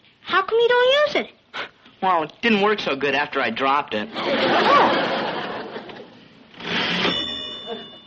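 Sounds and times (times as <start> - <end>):
speech: 0.4 - 1.4, 2.0 - 5.2
laughter: 4.1 - 6.2
typewriter carriage bell: 6.7 - 8.0.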